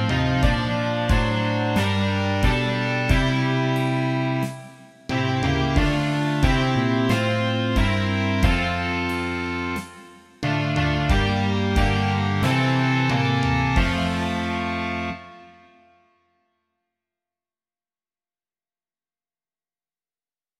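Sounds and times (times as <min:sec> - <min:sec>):
rock music: 0:00.0 - 0:15.6.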